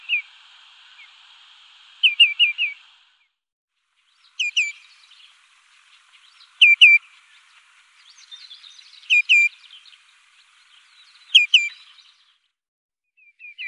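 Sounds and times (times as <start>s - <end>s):
Common greenshank clear, ringing, downslurred call notes: 2.0s - 2.8s, 4.3s - 5.3s, 6.0s - 7.3s, 8.0s - 10.0s, 11.2s - 12.1s.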